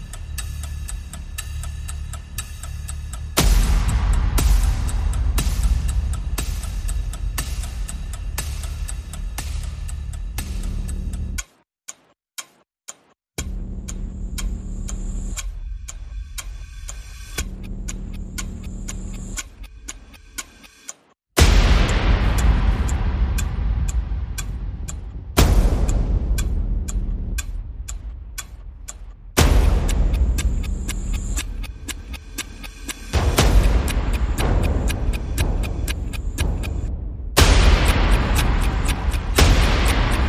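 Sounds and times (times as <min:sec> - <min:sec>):
percussion ticks: 0:00.0 - 0:40.2
percussion hits: 0:03.3 - 0:11.6, 0:21.4 - 0:40.2.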